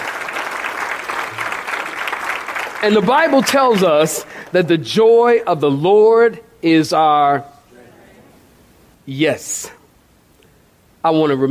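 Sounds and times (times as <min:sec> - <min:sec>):
audience clapping hands: 0:00.0 - 0:04.6
speech: 0:02.8 - 0:07.5, 0:09.1 - 0:09.8, 0:11.0 - 0:11.4.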